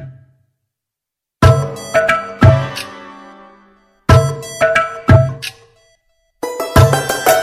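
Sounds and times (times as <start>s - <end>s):
instrumental ringtone: 1.4s - 7.4s.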